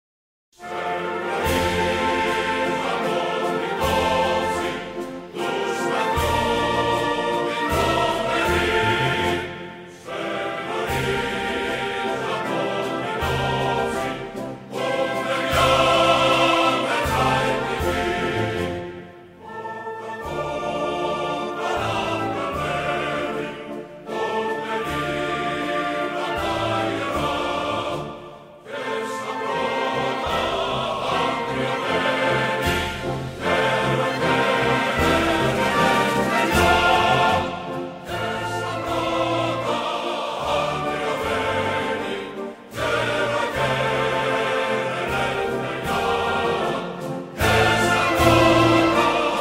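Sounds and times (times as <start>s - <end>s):
national anthem: 0.6s - 49.4s.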